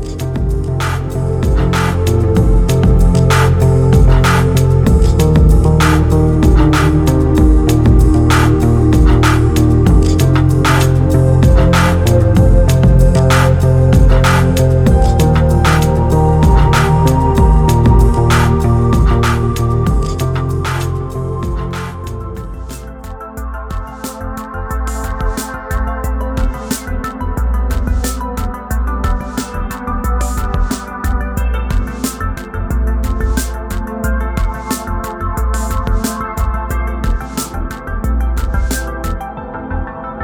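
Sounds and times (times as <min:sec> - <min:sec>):
retro chillout music: 0:00.0 - 0:40.2.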